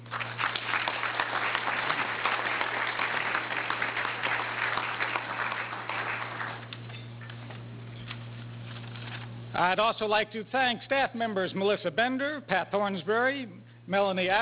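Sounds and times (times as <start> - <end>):
audience applause: 0.0 - 6.8
speech: 9.6 - 14.3.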